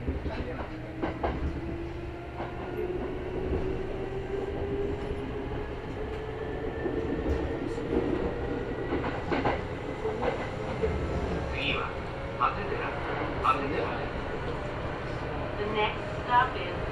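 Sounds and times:
Kintetsu Osaka Line express train wheels and motor rumbling: 0.0 - 16.9.

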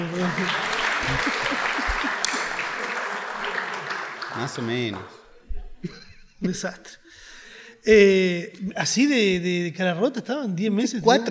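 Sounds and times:
audience applause: 0.0 - 5.3
laughter: 0.0 - 6.9
speech: 0.2 - 1.7, 4.4 - 5.2, 5.8 - 7.2, 7.8 - 11.2.

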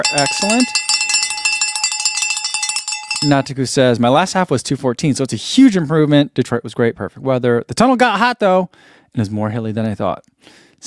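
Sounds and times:
speech: 0.0 - 0.8, 3.2 - 10.7
cowbell-like metallic bell rung to celebrate: 0.0 - 3.6.

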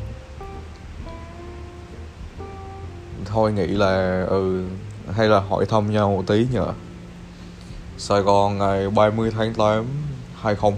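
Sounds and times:
city traffic hum with tonal whines: 0.0 - 10.7
steady rain hissing in the city: 0.0 - 10.7
speech: 3.3 - 6.9, 8.0 - 10.7.

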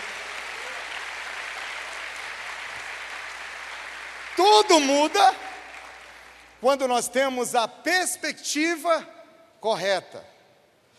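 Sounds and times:
audience applause: 0.0 - 6.6
speech: 4.4 - 5.4, 6.6 - 10.3.

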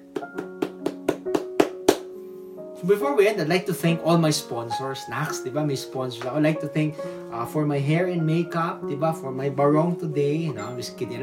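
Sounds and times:
audience clapping: 0.1 - 2.1
speech: 2.8 - 11.2.

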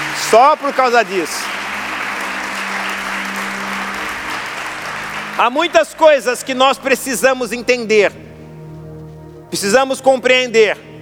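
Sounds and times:
audience applauding: 0.0 - 7.8
speech: 0.3 - 1.6, 5.4 - 8.3, 9.5 - 10.9.

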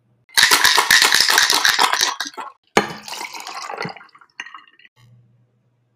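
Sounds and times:
liquid poured into a glass while making a drink: 0.6 - 4.9.

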